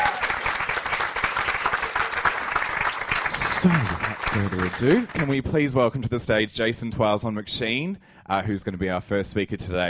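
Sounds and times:
audience applause: 0.0 - 5.5
speech: 3.6 - 9.8.

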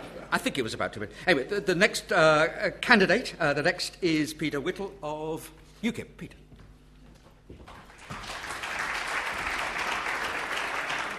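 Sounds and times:
speech: 0.3 - 6.4
audience clapping: 7.6 - 11.1.

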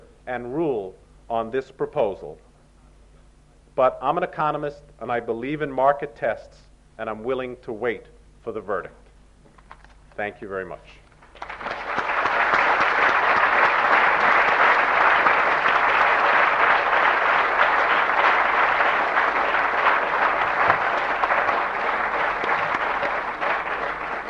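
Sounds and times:
speech: 0.3 - 2.5, 3.8 - 9.0, 10.2 - 11.0
large audience applause: 11.2 - 24.2.

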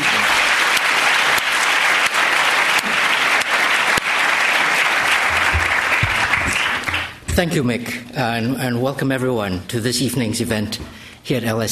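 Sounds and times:
audience applause for a debate speaker at LSE: 0.0 - 7.2
speech: 7.4 - 11.7.

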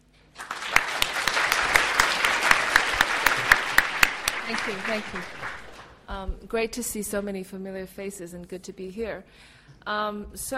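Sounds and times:
audience applause: 0.4 - 5.9
speech: 4.5 - 5.5, 6.1 - 10.5.

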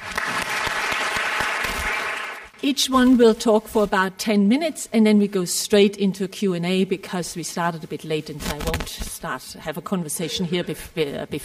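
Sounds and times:
audience applause welcoming a panel of speakers: 0.0 - 2.5
speech: 2.6 - 11.4.

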